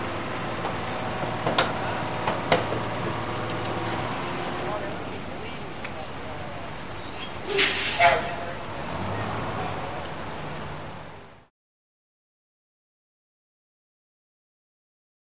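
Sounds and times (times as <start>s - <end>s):
garbage truck: 0.0s - 11.5s.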